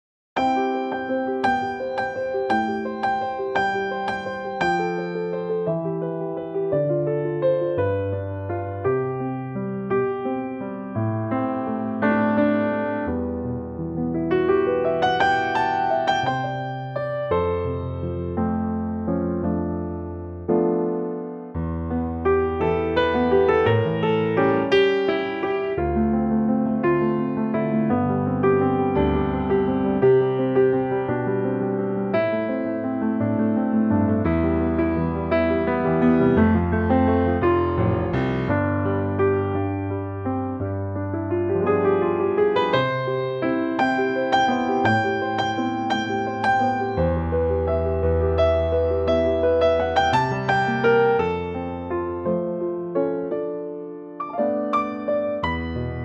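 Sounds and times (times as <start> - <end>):
piano note C: 0.4 - 56.0.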